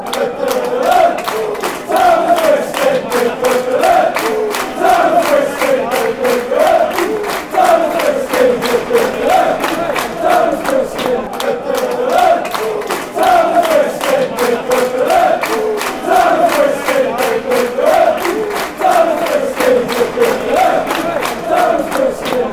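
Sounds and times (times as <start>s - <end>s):
chanting: 0.0s - 22.5s.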